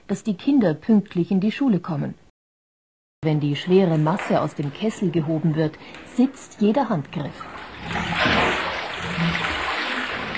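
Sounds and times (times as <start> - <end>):
speech: 0.1 - 2.2, 3.2 - 8.4
whey draining out of cheese moulds: 7.4 - 10.3.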